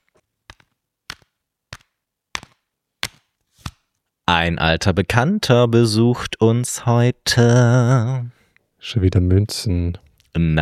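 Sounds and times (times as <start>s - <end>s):
deck of cards being shuffled: 0.0s - 4.0s
speech: 4.4s - 10.5s.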